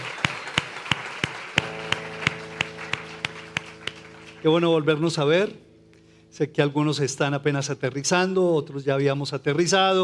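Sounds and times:
audience applause: 0.0 - 4.4
speech: 4.4 - 5.7, 6.3 - 10.0.

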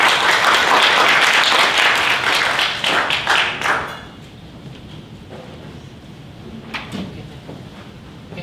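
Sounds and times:
audience applause: 0.0 - 4.2.

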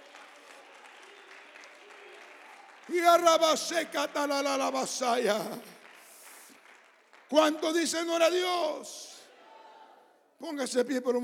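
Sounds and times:
audience clapping: 0.0 - 8.5
speech: 2.9 - 5.7, 7.3 - 9.1, 10.4 - 11.2.

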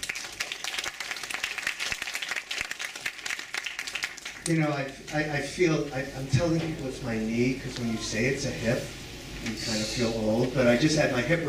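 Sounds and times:
audience applause welcoming a speaker at a special screening and discussion event: 0.0 - 4.6
speech: 4.5 - 11.4.

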